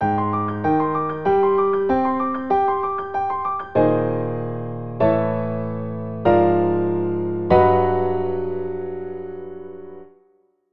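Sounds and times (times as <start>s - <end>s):
piano: 0.0s - 10.6s.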